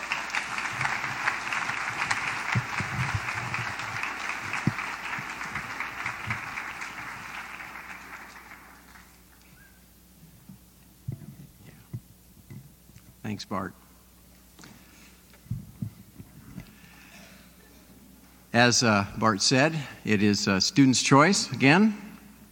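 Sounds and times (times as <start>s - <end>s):
room full of people applauding: 0.0s - 9.7s
faint thumps and rustles in a quiet hall: 10.2s - 12.8s, 15.4s - 16.7s
speech: 13.4s - 13.8s, 18.6s - 22.0s.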